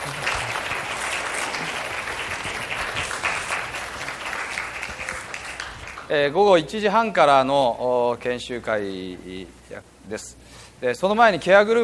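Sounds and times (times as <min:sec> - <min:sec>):
congregation applauding the preacher after a church service: 0:00.0 - 0:06.2
speech: 0:06.1 - 0:11.8.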